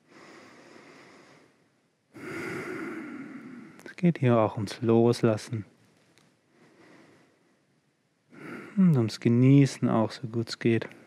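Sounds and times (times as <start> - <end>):
slow deliberate breathing during a yoga session: 0.0 - 3.9, 6.5 - 7.7, 8.3 - 8.9
speech: 4.0 - 5.7, 8.9 - 11.0.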